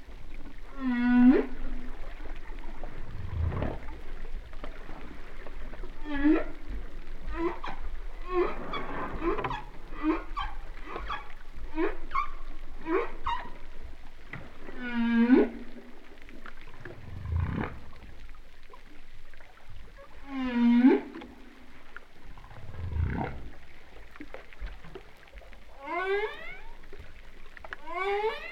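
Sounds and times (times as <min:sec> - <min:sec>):
humpback whale calling: 0:00.6 - 0:04.1, 0:05.7 - 0:18.2, 0:20.0 - 0:24.1, 0:25.7 - 0:27.0, 0:27.8 - 0:28.5.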